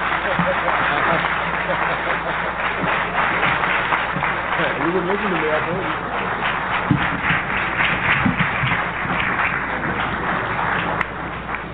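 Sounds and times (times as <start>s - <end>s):
laughter: 0.0s - 3.7s
audience applause: 0.0s - 11.7s
speech: 4.9s - 6.3s.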